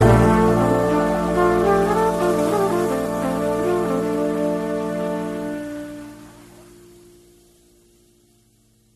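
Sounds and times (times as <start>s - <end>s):
melody: 0.0s - 7.2s.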